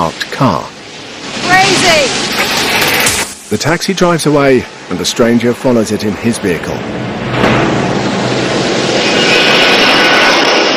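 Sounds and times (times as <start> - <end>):
speech: 0.0 - 0.8, 3.5 - 7.6
airplane engine roar coming in to land: 0.0 - 10.7.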